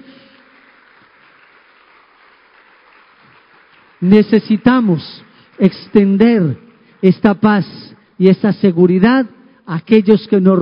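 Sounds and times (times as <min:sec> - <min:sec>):
audience applause: 0:00.0 - 0:07.0
speech: 0:04.0 - 0:10.6.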